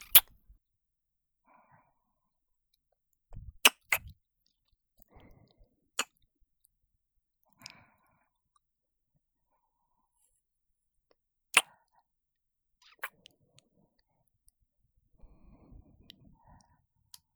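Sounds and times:
ASMR kissing sounds: 0:00.0 - 0:00.4, 0:03.4 - 0:04.1.

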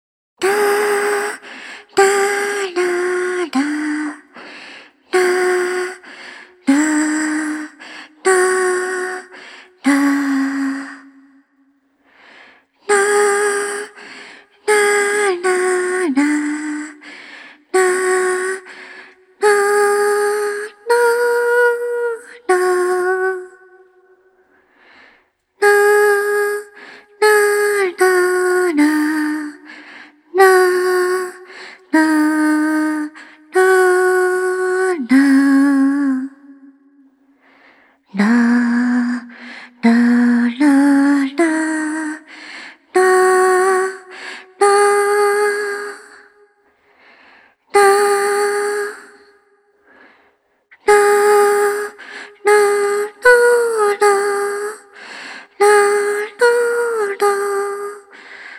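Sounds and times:
lullaby with reverb: 0:00.4 - 0:11.6, 0:12.8 - 0:24.4, 0:25.6 - 0:37.1, 0:38.1 - 0:46.6, 0:47.7 - 0:49.6, 0:50.8 - 0:58.5.

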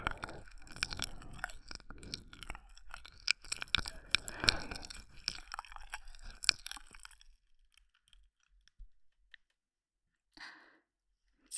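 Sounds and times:
ear licking: 0:00.0 - 0:07.3.

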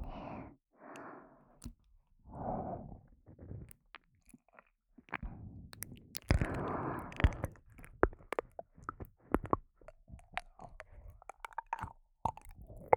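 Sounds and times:
ear licking: 0:03.4 - 0:12.9.

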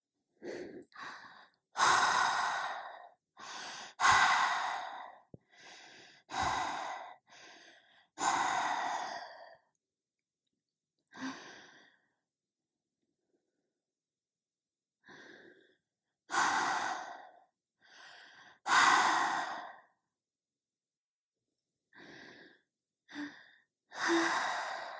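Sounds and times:
breathing: 0:00.4 - 0:09.7, 0:11.1 - 0:12.2, 0:15.0 - 0:20.0, 0:21.9 - 0:24.9.

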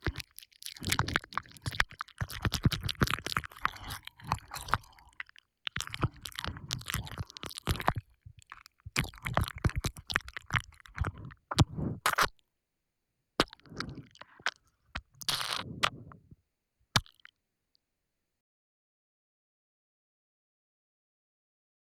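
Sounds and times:
ear licking on the left side: 0:00.0 - 0:12.3, 0:13.4 - 0:16.3, 0:17.0 - 0:17.3.

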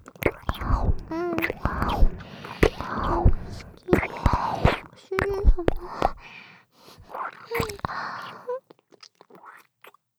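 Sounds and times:
right ear licking ASMR: 0:00.0 - 0:10.0
kissing sounds ASMR: 0:00.2 - 0:06.3, 0:07.5 - 0:07.9.

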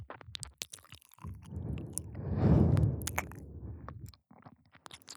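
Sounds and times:
gentle ear licking on the right side for ASMR: 0:01.3 - 0:04.1.

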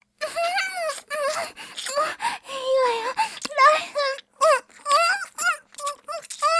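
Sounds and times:
person gulping in lewd voice material: 0:00.4 - 0:06.5.

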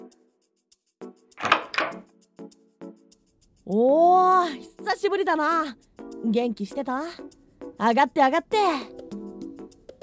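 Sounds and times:
door being unlocked with a key: 0:01.4 - 0:02.0
speech: 0:03.7 - 0:08.9.

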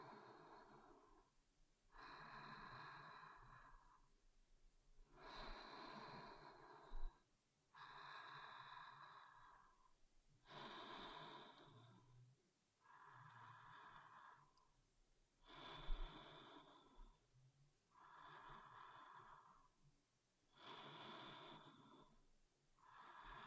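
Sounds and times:
person breathing in sleep recorded with binaural microphones: 0:00.0 - 0:01.3, 0:01.9 - 0:04.1, 0:05.1 - 0:12.1, 0:12.8 - 0:14.7, 0:15.4 - 0:17.2, 0:17.9 - 0:19.8, 0:20.5 - 0:22.2, 0:22.8 - 0:23.4.

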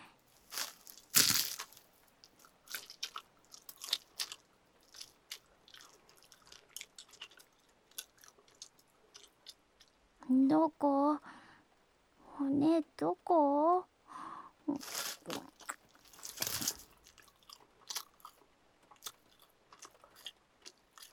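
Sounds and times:
chewing meat: 0:00.4 - 0:10.0, 0:14.8 - 0:21.1
speech: 0:10.5 - 0:11.3, 0:12.4 - 0:13.9.

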